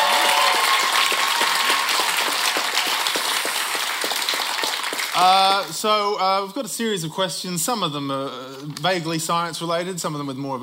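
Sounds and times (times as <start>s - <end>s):
audience applause for contestants: 0.0s - 5.7s
speech: 5.2s - 10.6s.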